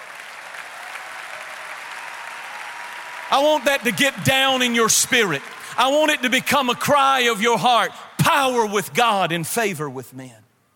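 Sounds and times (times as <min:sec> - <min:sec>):
audience applause: 0:00.0 - 0:07.9
speech: 0:03.3 - 0:10.4.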